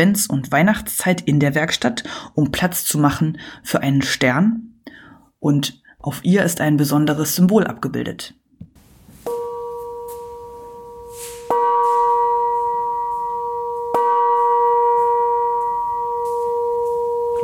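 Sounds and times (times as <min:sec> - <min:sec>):
speech: 0:00.0 - 0:04.7, 0:05.4 - 0:08.4
bell ringing: 0:09.3 - 0:17.4.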